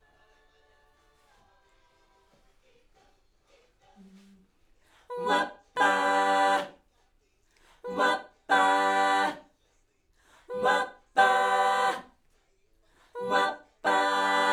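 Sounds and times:
backing vocals on AKG microphone: 5.1s - 6.8s, 7.8s - 9.4s, 10.5s - 12.1s, 13.2s - 14.5s.

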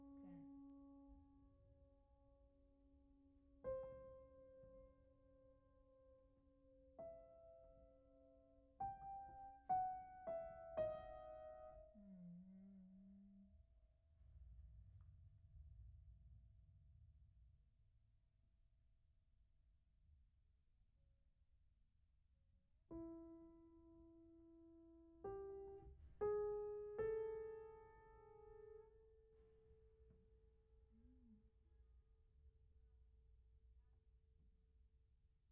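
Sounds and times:
piano: 0.0s - 13.5s, 22.9s - 31.6s.

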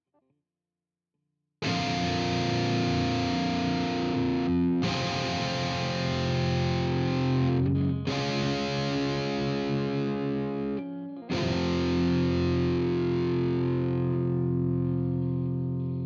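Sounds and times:
guitar: 1.6s - 16.0s.

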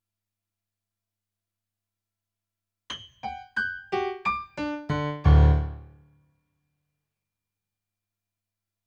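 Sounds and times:
rock and roll piano: 2.9s - 6.0s.

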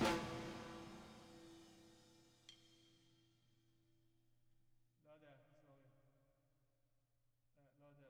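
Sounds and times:
drums with reverb: 0.0s - 2.0s.

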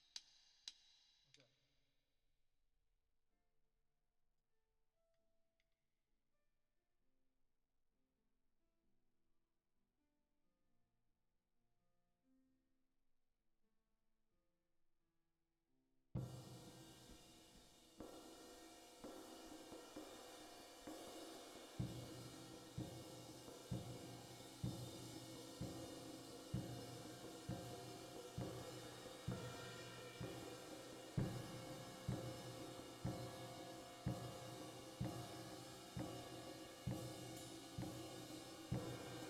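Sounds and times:
drums with reverb: 16.2s - 39.2s.

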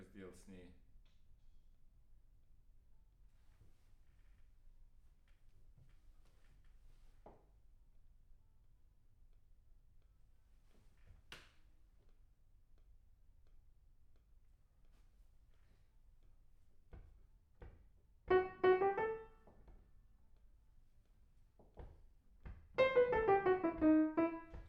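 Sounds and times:
piano: 18.3s - 19.8s, 21.8s - 24.6s.

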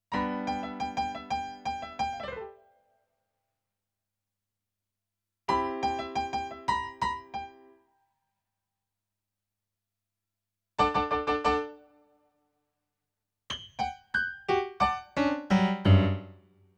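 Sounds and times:
rock and roll piano: 0.1s - 2.6s, 5.5s - 7.6s, 10.8s - 11.8s, 13.5s - 16.4s.

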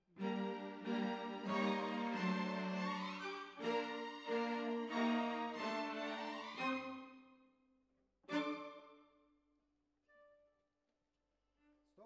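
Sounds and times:
cellos playing: 0.0s - 7.2s, 8.3s - 9.0s.

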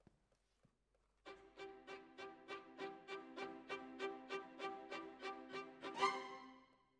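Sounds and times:
violins: 1.3s - 6.7s.

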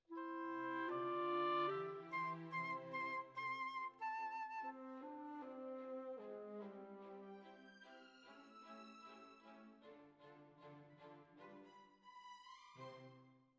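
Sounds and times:
flute: 0.1s - 8.4s.

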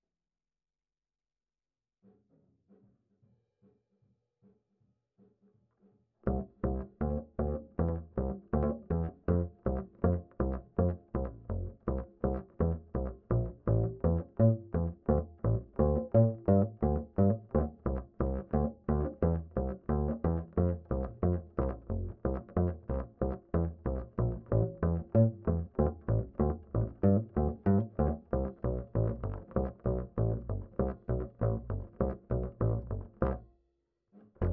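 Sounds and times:
bass line: 6.2s - 33.4s.

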